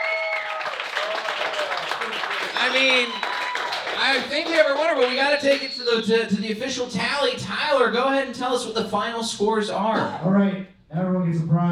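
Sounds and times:
audience clapping to vote: 0:00.0 - 0:06.0
speech: 0:02.6 - 0:03.3, 0:03.9 - 0:11.7.

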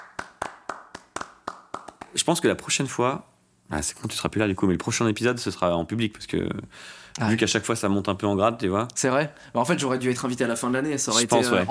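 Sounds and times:
handclaps: 0:00.0 - 0:02.2
speech: 0:02.1 - 0:11.6.

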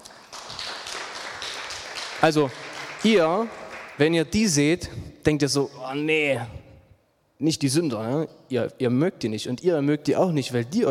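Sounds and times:
small audience applause: 0:00.0 - 0:04.1
speech: 0:02.2 - 0:06.6, 0:07.4 - 0:10.8.

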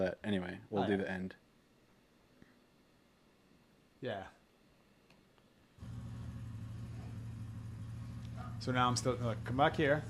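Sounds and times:
speech: 0:00.0 - 0:01.4, 0:04.0 - 0:04.4, 0:08.6 - 0:10.0
engine revving as the gas pedal is pressed: 0:05.8 - 0:10.0.

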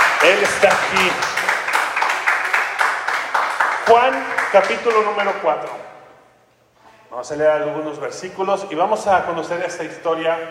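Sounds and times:
audience applauding: 0:00.0 - 0:05.8
speech: 0:00.2 - 0:01.4, 0:03.9 - 0:05.9, 0:07.1 - 0:10.5.

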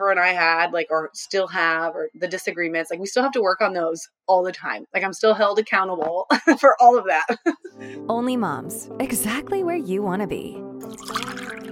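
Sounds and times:
speech: 0:00.0 - 0:11.2
wine poured into a glass: 0:10.8 - 0:11.6.

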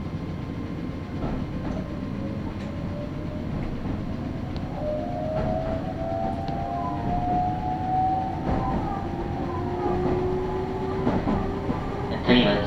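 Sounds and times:
Meitetsu local train rumbling on rails: 0:00.0 - 0:12.6
rising whine: 0:04.1 - 0:12.6.

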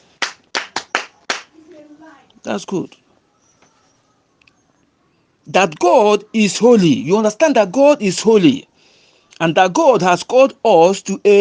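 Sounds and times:
audience clapping: 0:00.2 - 0:01.5
speech: 0:02.2 - 0:03.0, 0:05.5 - 0:08.7, 0:09.4 - 0:11.3.

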